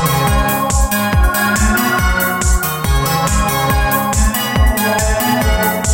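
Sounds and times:
happy ringing: 0.1s - 5.9s.

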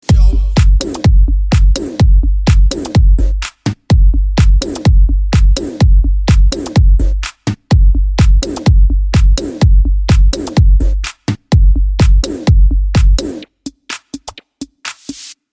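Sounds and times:
bass club mix: 0.0s - 15.3s.

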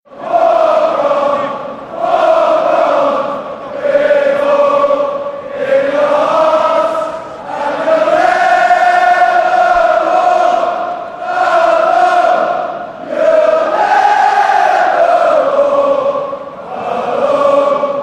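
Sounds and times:
Kop football crowd chanting: 0.1s - 18.0s.

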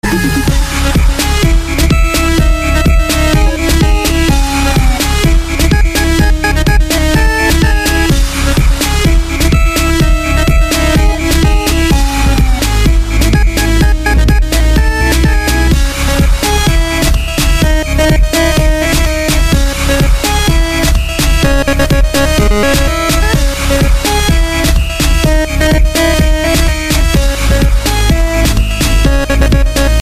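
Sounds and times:
8-bit chiptune: 0.0s - 29.9s.

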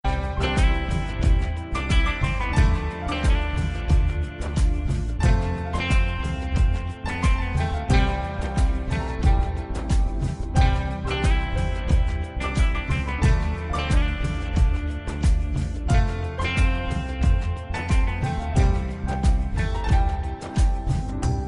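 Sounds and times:
piano: 0.0s - 21.4s.

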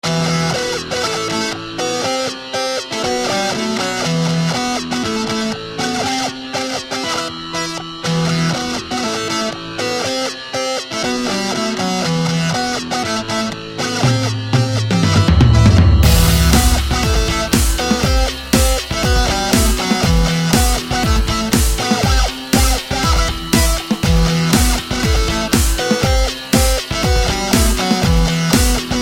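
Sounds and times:
hard rock music: 0.0s - 29.0s.

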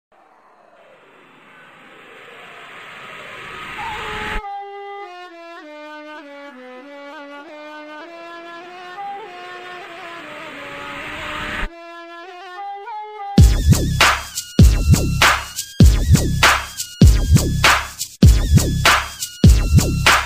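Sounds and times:
Arab gangsta rap beat: 13.4s - 20.2s.

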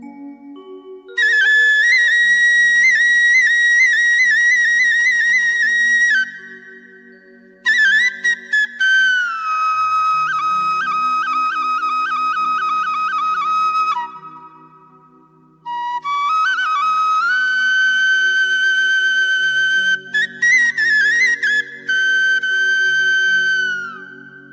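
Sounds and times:
bansuri flute: 1.1s - 24.5s.

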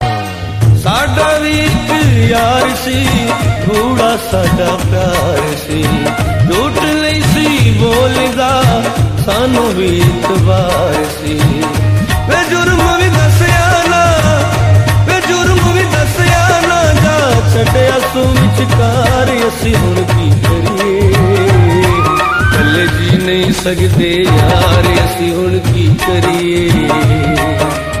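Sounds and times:
Punjabi music: 0.0s - 27.9s.

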